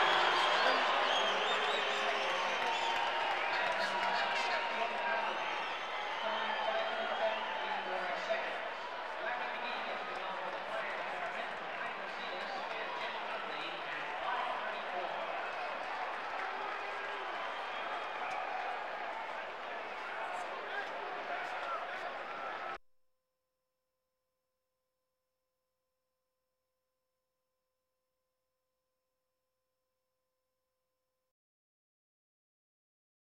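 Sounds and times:
sports crowd: 0.0 - 22.8.

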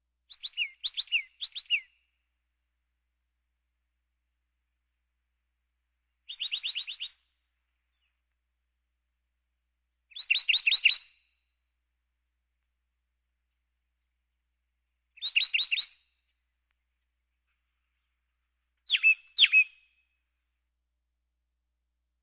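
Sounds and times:
birds: 0.3 - 2.2, 6.2 - 8.4, 10.1 - 11.4, 15.1 - 20.4.

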